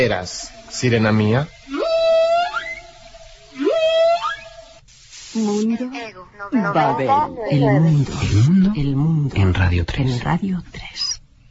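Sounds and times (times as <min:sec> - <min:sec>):
speech: 0:00.0 - 0:01.6, 0:05.4 - 0:11.0
whale song: 0:00.0 - 0:04.9.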